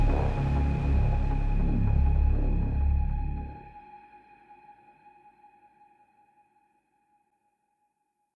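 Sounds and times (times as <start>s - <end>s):
instrumental music: 0.0s - 4.6s.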